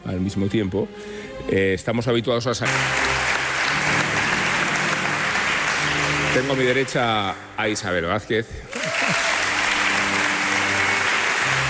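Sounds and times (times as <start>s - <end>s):
speech: 0.2s - 3.4s, 6.3s - 8.8s
studio audience applause: 2.6s - 7.5s, 8.7s - 11.6s.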